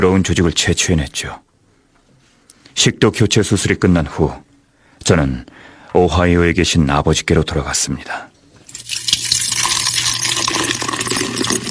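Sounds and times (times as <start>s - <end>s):
speech: 0.0s - 1.5s, 2.8s - 9.1s
beer poured into a feeding tube: 8.6s - 11.6s.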